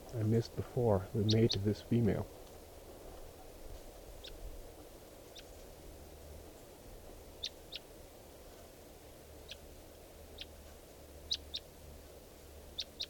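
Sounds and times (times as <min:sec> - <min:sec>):
speech: 0:00.1 - 0:02.4
wild bird calling: 0:00.8 - 0:02.0, 0:04.2 - 0:04.4, 0:05.3 - 0:05.5, 0:09.4 - 0:10.6, 0:11.3 - 0:11.7, 0:12.7 - 0:13.0.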